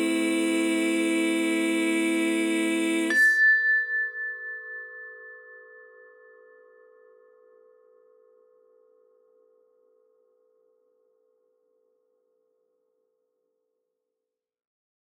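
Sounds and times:
mantra chanting: 0.0 - 3.4
singing bowls: 0.0 - 10.9.

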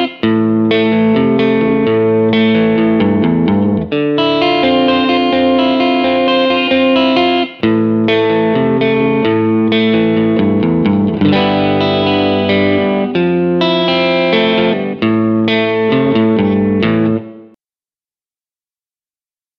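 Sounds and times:
blues country riff in A: 0.0 - 17.6.

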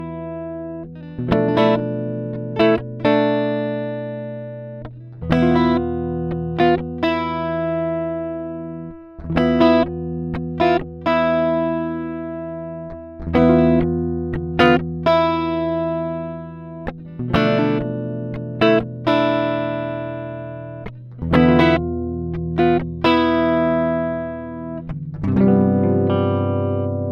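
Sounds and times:
dry guitar through combo amplifier: 0.0 - 27.0.

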